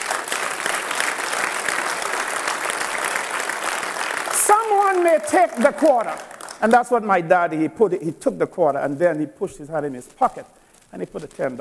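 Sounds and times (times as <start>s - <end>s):
audience applause: 0.0s - 6.8s
speech: 4.9s - 11.5s.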